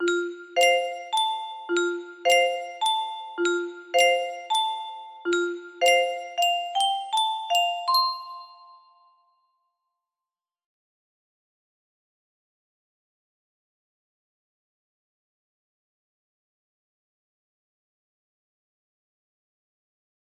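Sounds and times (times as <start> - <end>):
music box melody: 0.0 - 9.2.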